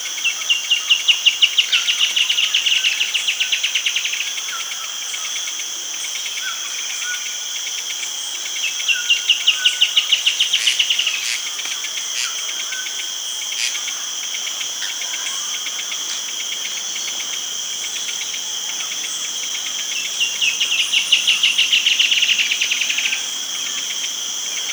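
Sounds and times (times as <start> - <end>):
high-pitched insect drone: 0.0 - 24.7
bird chirping: 16.1 - 24.7.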